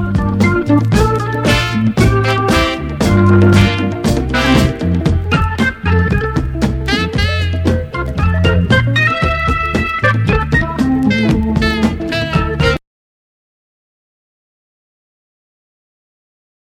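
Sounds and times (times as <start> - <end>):
soul organ: 0.0 - 12.8.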